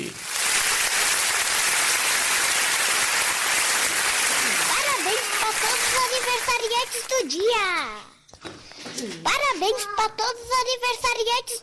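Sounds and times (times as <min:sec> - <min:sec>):
applause: 0:00.0 - 0:07.2
speech: 0:05.7 - 0:11.6.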